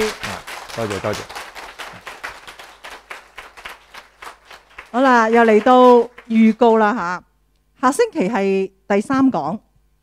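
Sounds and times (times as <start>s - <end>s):
audience applause: 0.0s - 7.0s
speech: 0.8s - 1.4s, 4.9s - 9.7s.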